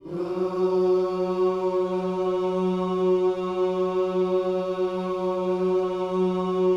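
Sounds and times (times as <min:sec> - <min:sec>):
gospel vocals in F sharp: 0:00.0 - 0:06.7.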